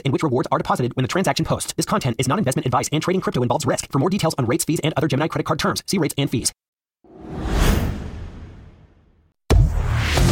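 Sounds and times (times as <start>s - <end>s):
speech: 0.0s - 6.7s
whoosh of a breaking news sounder: 7.1s - 10.2s.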